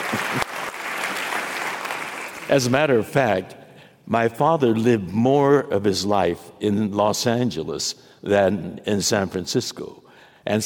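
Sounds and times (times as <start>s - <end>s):
lone San Franciscan applauding: 0.0s - 2.4s
speech: 2.5s - 10.6s.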